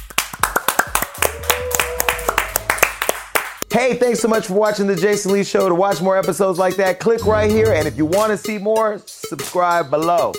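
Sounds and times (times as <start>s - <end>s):
studio audience clapping: 0.0s - 3.6s
speech: 3.8s - 10.3s.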